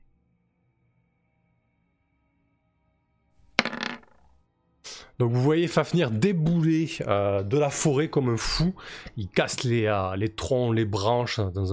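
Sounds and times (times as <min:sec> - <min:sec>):
ten-sided die being rolled: 0:03.5 - 0:04.3
speech: 0:05.2 - 0:11.7.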